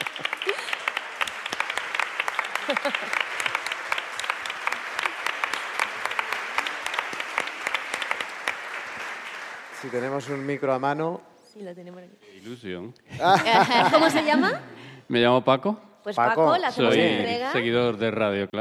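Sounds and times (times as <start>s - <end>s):
audience applause: 0.0s - 11.1s
laughter: 2.4s - 3.7s, 13.1s - 14.8s
speech: 2.7s - 3.3s, 9.8s - 18.5s.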